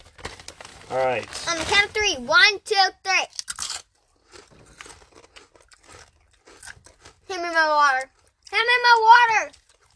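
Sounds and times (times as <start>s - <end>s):
speech: 0.9s - 3.4s, 7.3s - 9.6s
person biting and chewing a chip: 3.3s - 9.9s.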